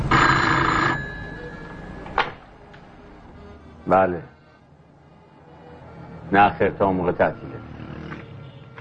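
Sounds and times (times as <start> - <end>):
telephone ringing on a desk in a hall: 0.1 - 2.2
speech: 3.9 - 4.3, 6.3 - 7.7.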